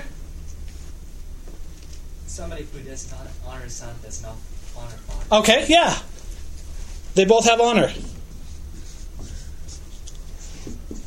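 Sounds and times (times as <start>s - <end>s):
speech: 2.4s - 6.1s, 7.2s - 8.1s
writing on a board: 8.0s - 11.0s.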